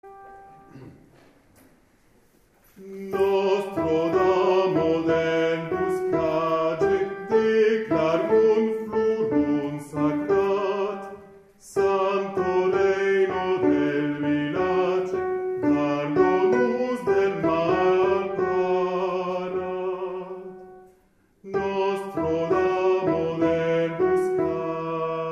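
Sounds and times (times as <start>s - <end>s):
alto voices singing: 2.6s - 25.2s.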